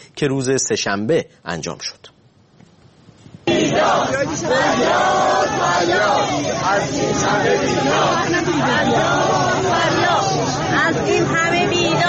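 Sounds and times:
speech: 0:00.2 - 0:02.2, 0:03.8 - 0:12.0
protest crowd of retirees chanting: 0:03.4 - 0:12.0.

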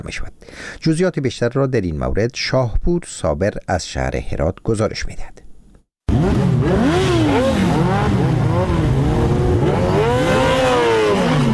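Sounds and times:
speech: 0:00.0 - 0:05.4
speed-loving riders' motorcycle exhaust in Herat province: 0:06.1 - 0:11.5.

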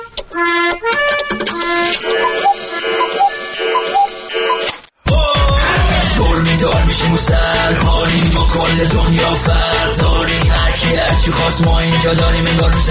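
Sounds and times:
bright synthesized jingle-like music: 0:00.4 - 0:12.8
mid-pitched electronic beep: 0:02.1 - 0:04.7.

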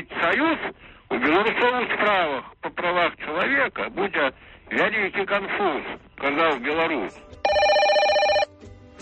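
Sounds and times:
speech: 0:00.2 - 0:07.4
telephone bell ringing: 0:07.4 - 0:08.5.

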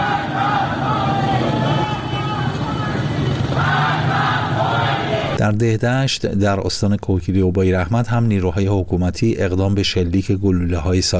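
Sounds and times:
protest crowd chanting slogans: 0:00.0 - 0:05.4
speech: 0:05.4 - 0:11.1.

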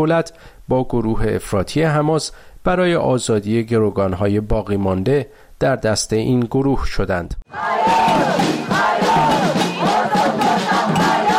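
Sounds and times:
speech: 0:00.0 - 0:09.6
crowd of demonstrators shouting and whooping in Tel Aviv: 0:07.5 - 0:11.3.

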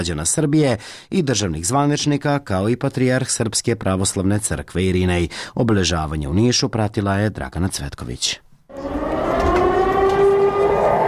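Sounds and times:
speech: 0:00.0 - 0:09.0
civil defense sirens on a town square in Niš: 0:08.7 - 0:11.0.

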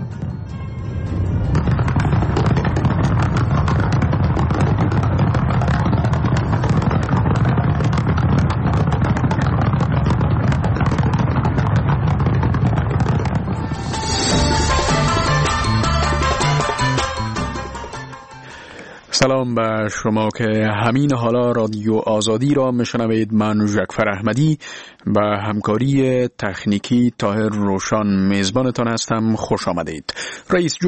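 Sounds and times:
bright tonal music-like passage: 0:00.0 - 0:02.6, 0:13.6 - 0:18.6
fireworks at Winter Olympics opening ceremony: 0:00.0 - 0:18.4
speech: 0:19.2 - 0:30.8.

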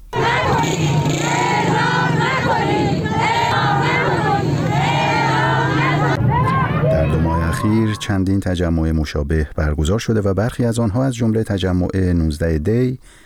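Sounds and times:
protesting families chanting an anti-execution slogan outside the judiciary's public relations office: 0:00.1 - 0:08.2
speech: 0:07.6 - 0:13.2.

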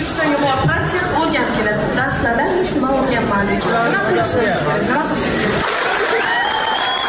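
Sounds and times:
speech: 0:00.2 - 0:05.8
overlapping voices and chatter: 0:05.2 - 0:07.0
participants of an online video meeting clapping: 0:05.3 - 0:07.0.

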